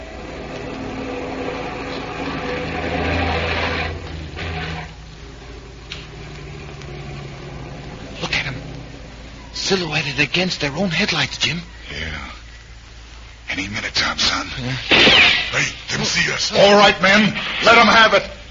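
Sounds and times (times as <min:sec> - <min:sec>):
heavy truck engines rumbling: 0:00.0 - 0:11.6
speech: 0:09.7 - 0:12.2, 0:13.6 - 0:18.3.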